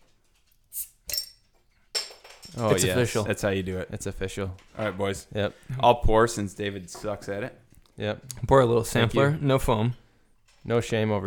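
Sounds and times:
beer bottle opened with a bottle opener: 0:00.7 - 0:01.3
bottle opener clinking against glass bottle: 0:01.0 - 0:03.0
speech: 0:02.6 - 0:10.0, 0:10.6 - 0:11.2.

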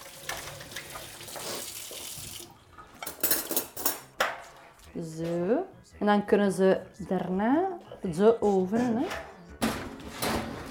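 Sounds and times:
water running from a tap while hands are washed: 0:00.0 - 0:02.9
speech: 0:05.0 - 0:09.2.

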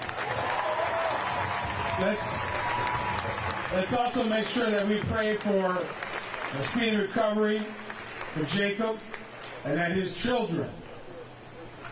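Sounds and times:
audience applause: 0:00.0 - 0:09.5
speech: 0:02.0 - 0:02.6, 0:03.7 - 0:07.8, 0:08.4 - 0:10.8
faint voices calling: 0:10.8 - 0:11.9.

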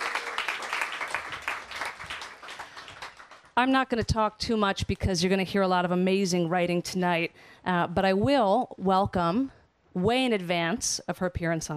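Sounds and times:
audience applause: 0:00.0 - 0:03.6
speech: 0:03.6 - 0:11.7.

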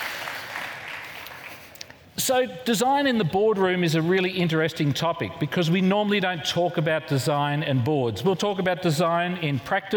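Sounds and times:
audience applause: 0:00.0 - 0:01.8
speech: 0:02.2 - 0:09.9.

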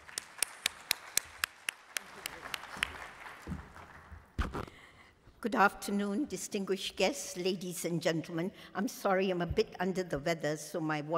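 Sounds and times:
audience applauding to welcome a speaker: 0:00.0 - 0:04.4
speech: 0:05.4 - 0:11.1.

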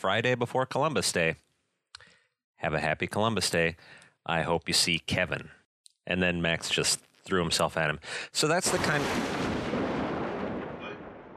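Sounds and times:
speech: 0:00.0 - 0:01.5, 0:02.6 - 0:09.7
thunder sound effect: 0:08.6 - 0:11.3.

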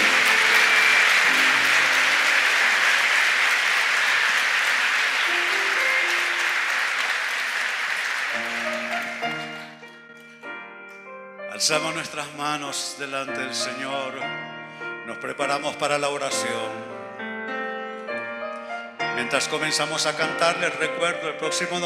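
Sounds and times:
crowd applauding: 0:00.0 - 0:09.9
speech: 0:11.7 - 0:14.5, 0:15.1 - 0:16.9, 0:19.2 - 0:21.8.

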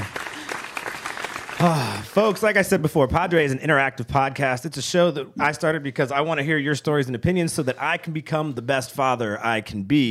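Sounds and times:
applause: 0:00.0 - 0:02.7
speech: 0:01.6 - 0:10.0.

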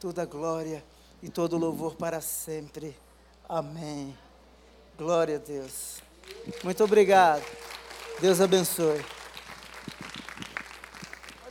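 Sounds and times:
speech: 0:00.0 - 0:04.2, 0:05.0 - 0:07.6, 0:08.2 - 0:09.2
audience applauding: 0:06.2 - 0:11.4.

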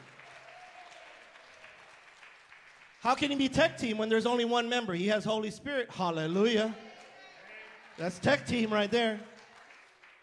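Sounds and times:
audience applause: 0:00.0 - 0:03.4, 0:06.6 - 0:10.2
speech: 0:03.0 - 0:06.8, 0:08.0 - 0:09.3.

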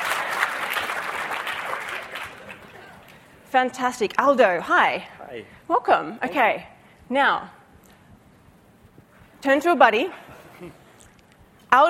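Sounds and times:
audience applause: 0:00.0 - 0:03.3
speech: 0:03.6 - 0:07.6, 0:09.4 - 0:10.8.

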